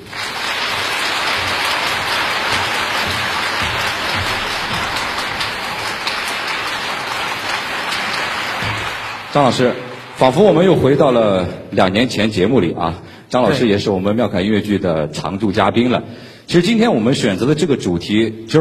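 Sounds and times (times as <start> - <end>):
audience applause: 0.0 - 11.3
speech: 9.3 - 18.5.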